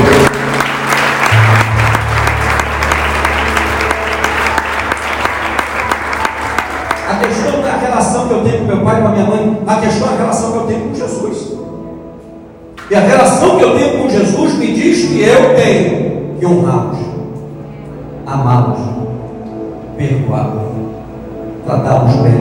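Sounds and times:
audience applauding: 0.0 - 8.2
speech: 9.1 - 11.7, 12.9 - 17.1, 18.3 - 19.0, 20.0 - 20.6, 21.7 - 22.3.

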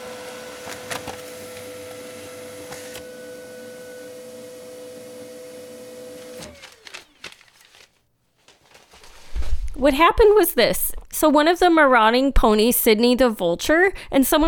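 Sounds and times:
knocked-over Xerox photocopier humming and whirring while making a copy: 0.0 - 7.9
speech: 9.8 - 14.4.

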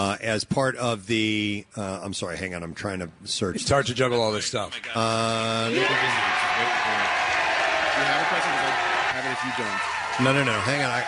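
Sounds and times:
speech: 0.0 - 7.4, 8.0 - 11.0
crowd applauding and cheering: 5.6 - 11.0.

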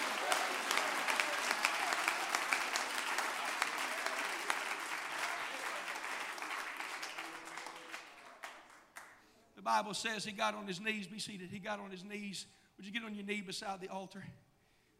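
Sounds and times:
audience clapping hands: 0.0 - 9.2
speech: 9.7 - 14.5.

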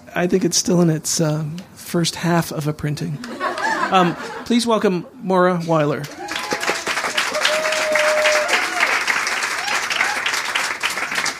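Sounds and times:
speech: 0.2 - 6.2
laughter: 3.2 - 4.5
audience snapping fingers at a book event: 6.0 - 11.3.

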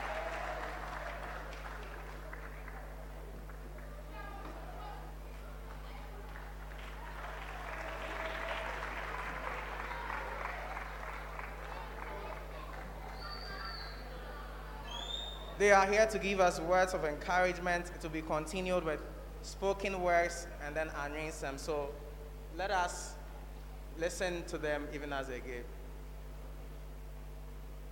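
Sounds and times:
audience clapping hands: 0.0 - 4.4, 5.6 - 14.1
speech: 15.6 - 22.0, 22.6 - 23.1, 24.0 - 25.8.

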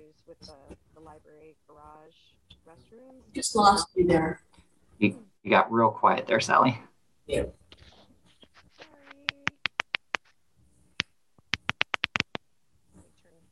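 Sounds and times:
speech: 0.2 - 7.6
typing on a keyboard: 9.0 - 10.3, 11.5 - 12.4.

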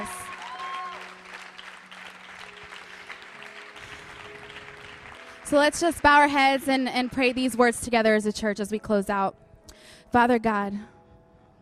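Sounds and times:
audience clapping: 0.0 - 7.9
speech: 5.5 - 9.4, 10.1 - 10.9.

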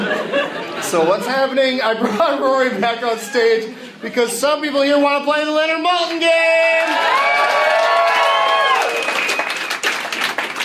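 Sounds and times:
laughter: 0.0 - 4.8
speech: 0.9 - 7.5
crowd clapping: 6.0 - 10.6.

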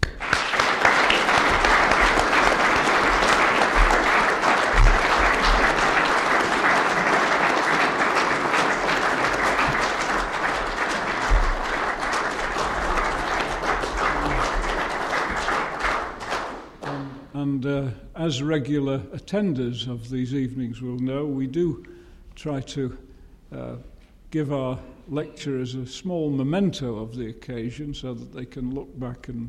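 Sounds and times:
audience applauding after a lecture: 0.0 - 17.3
speech: 18.3 - 29.4.

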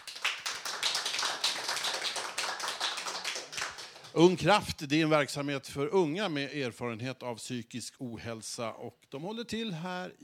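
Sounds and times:
audience applause: 0.0 - 4.1
speech: 4.2 - 10.2.

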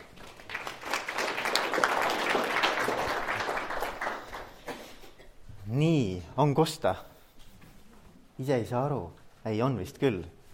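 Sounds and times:
audience applause: 0.0 - 4.8
speech: 5.8 - 7.1, 8.4 - 10.4.

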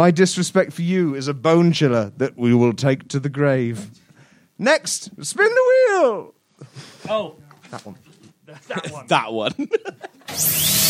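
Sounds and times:
speech: 0.0 - 4.0, 4.6 - 10.8
laughter: 6.6 - 10.3
dentist's drill whining: 10.3 - 10.8.

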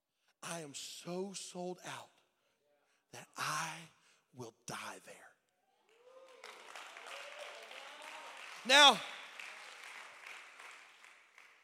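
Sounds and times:
speech: 0.5 - 2.1, 3.1 - 5.3, 8.6 - 9.2
audience clapping: 5.8 - 11.6.

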